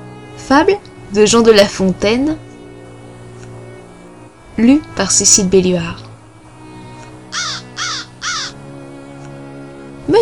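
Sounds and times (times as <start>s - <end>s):
speech: 0.5s - 2.4s, 4.6s - 6.1s
crow cawing: 7.3s - 8.6s.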